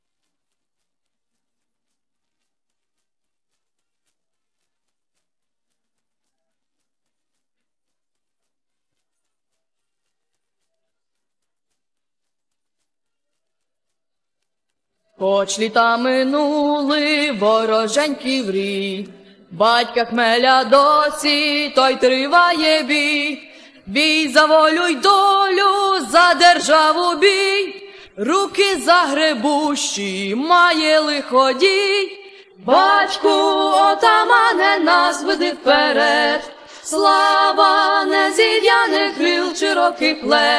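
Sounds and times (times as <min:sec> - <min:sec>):
Ukrainian song vocals: 0:15.2 - 0:40.5.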